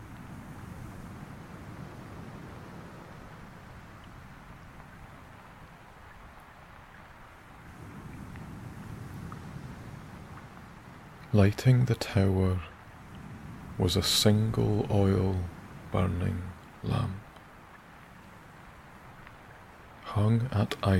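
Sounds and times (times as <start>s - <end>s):
distant waves: 0.0s - 20.9s
wind: 0.0s - 20.9s
speech: 11.3s - 12.7s, 13.8s - 17.2s, 20.2s - 20.9s.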